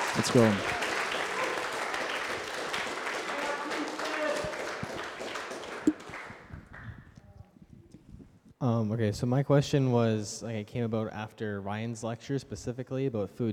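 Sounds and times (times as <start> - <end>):
audience round of applause: 0.0 - 6.8
speech: 0.2 - 0.8, 8.6 - 13.5.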